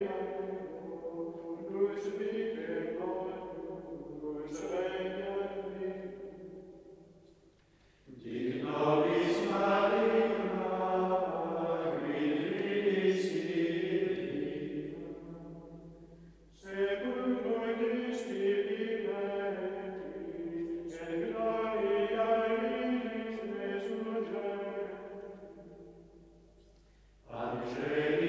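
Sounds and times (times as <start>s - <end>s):
male choir of Benedictine monks singing: 0.0s - 6.4s, 8.1s - 16.0s, 16.6s - 25.8s, 27.3s - 28.2s.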